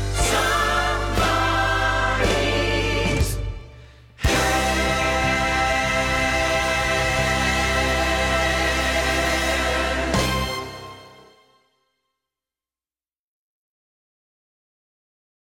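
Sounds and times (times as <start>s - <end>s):
Motown vocals: 0.1s - 10.9s.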